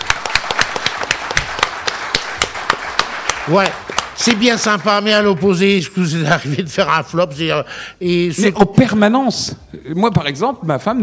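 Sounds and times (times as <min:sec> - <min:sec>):
audience applause: 0:00.0 - 0:05.8
speech: 0:03.5 - 0:11.0.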